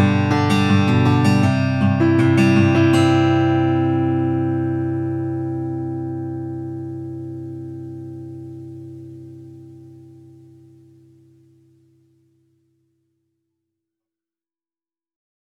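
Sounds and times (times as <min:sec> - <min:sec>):
campfire: 0:00.0 - 0:11.6.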